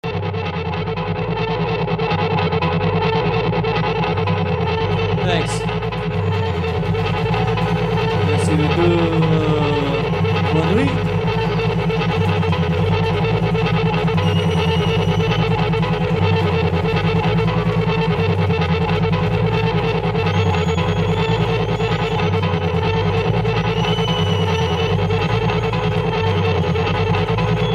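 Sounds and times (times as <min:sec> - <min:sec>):
noise feedback: 0:00.0 - 0:27.7.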